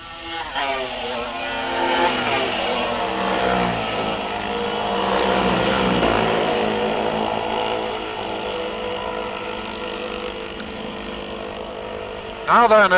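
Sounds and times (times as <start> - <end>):
racing motorcycles roaring past: 0.0 - 12.9.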